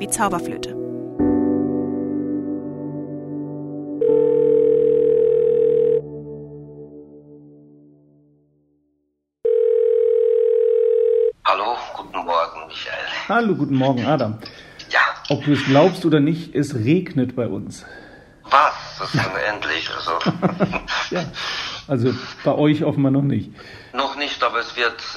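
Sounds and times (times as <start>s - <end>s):
speech: 0.0s - 0.8s, 13.3s - 14.6s, 15.3s - 25.1s
musical chord: 0.0s - 5.1s, 5.9s - 8.9s
telephone call dialing tone: 4.0s - 6.0s, 9.4s - 11.4s
laughter: 18.9s - 22.6s.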